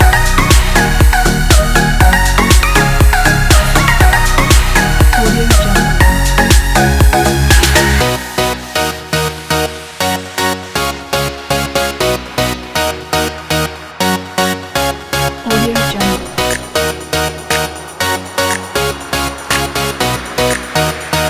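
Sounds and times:
upbeat pop music: 0:00.0 - 0:21.2.

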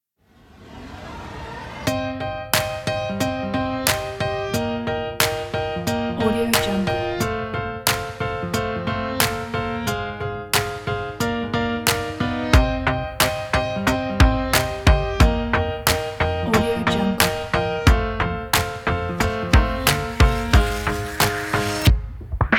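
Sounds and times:
pop jazz rock music: 0:01.9 - 0:22.5.

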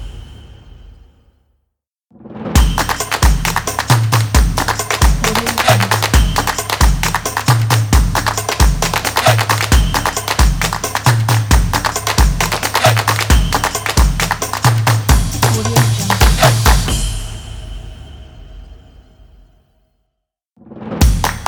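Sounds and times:
drums playing: 0:02.6 - 0:17.2, 0:21.0 - 0:21.4.

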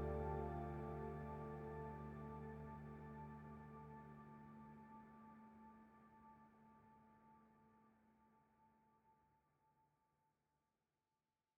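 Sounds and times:
piano soundscape: 0:00.0 - 0:05.9.

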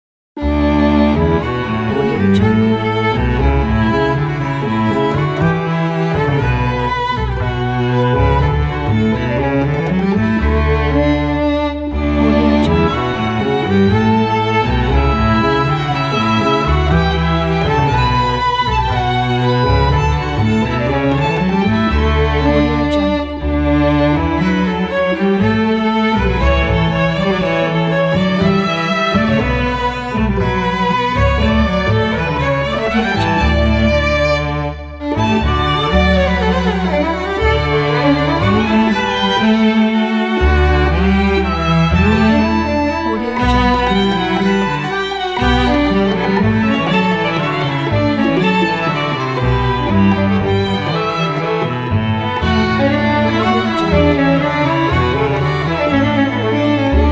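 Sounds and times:
baroque music: 0:00.4 - 0:57.0.

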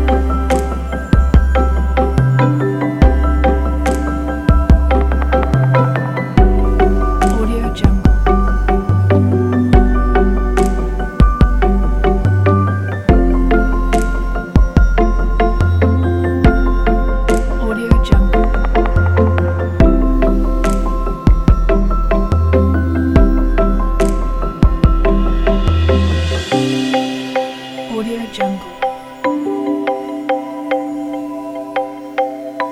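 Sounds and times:
ambient documentary music: 0:00.0 - 0:32.6.

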